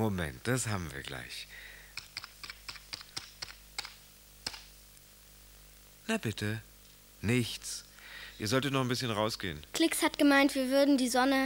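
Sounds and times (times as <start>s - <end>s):
speech: 0.0s - 1.7s, 6.1s - 11.4s
faint steady hum: 0.0s - 11.4s
typing a web search on a computer keyboard: 2.0s - 4.6s.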